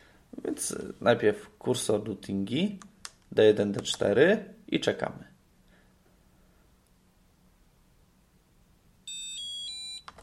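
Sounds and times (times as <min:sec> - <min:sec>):
speech: 0:00.6 - 0:05.3
braille display beep signal: 0:09.1 - 0:10.1.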